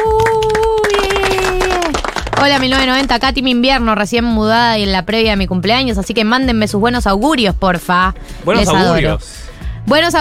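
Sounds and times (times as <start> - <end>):
applause for health workers: 0.0 - 3.3
speech: 2.4 - 10.1.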